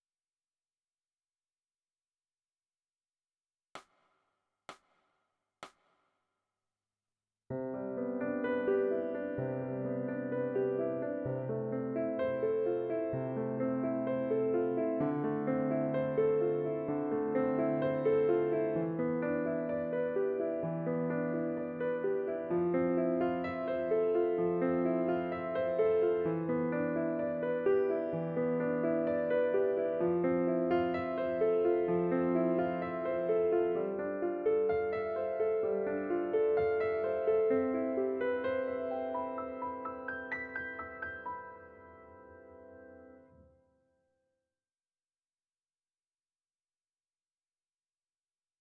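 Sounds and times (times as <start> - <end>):
piano: 7.5 - 44.0.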